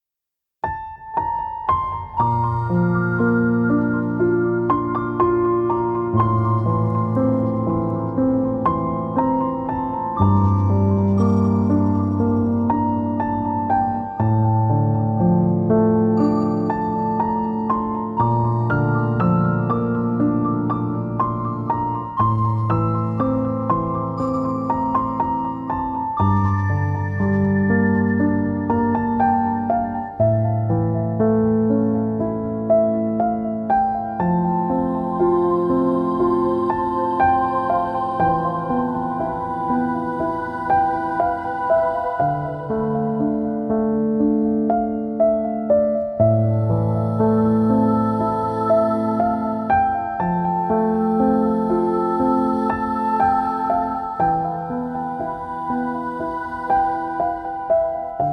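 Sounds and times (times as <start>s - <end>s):
piano: 0.6s - 58.3s.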